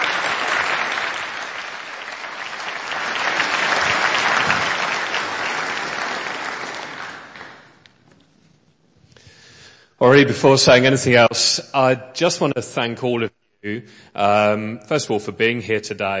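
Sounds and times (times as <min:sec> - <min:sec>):
audience applause welcoming a family member up to speak: 0:00.0 - 0:07.9
speech: 0:10.0 - 0:16.1.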